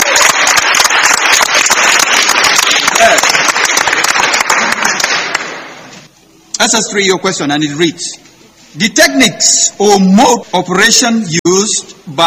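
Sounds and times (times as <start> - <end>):
round of applause: 0.0 - 5.8
speech: 6.6 - 12.2.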